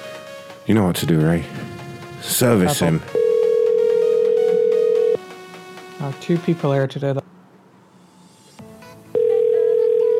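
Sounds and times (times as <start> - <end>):
speech: 0.7 - 3.2, 6.0 - 7.3
steady single-pitched telephone tone of an unanswered call: 3.0 - 5.2, 9.2 - 10.1.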